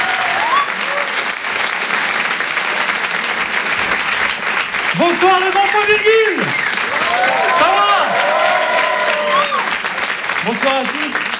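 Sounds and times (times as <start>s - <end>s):
audience cheering: 0.0s - 1.5s, 4.4s - 11.3s
audience clapping for a comedian at a stand-up comedy show: 0.0s - 11.3s
speech: 5.0s - 7.9s, 10.4s - 11.2s.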